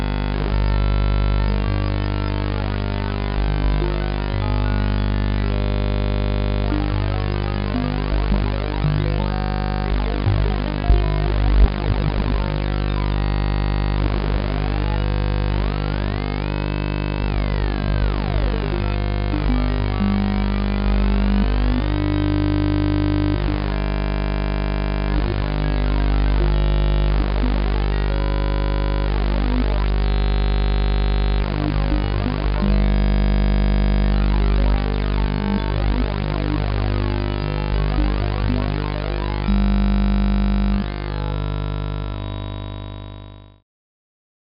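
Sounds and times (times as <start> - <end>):
generic additive synthesis tone: 0.2 - 43.2.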